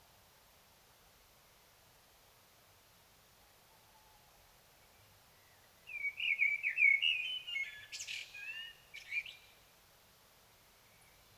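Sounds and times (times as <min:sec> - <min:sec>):
Common blackbird singing a mellow whistled warble: 0:05.9 - 0:09.4.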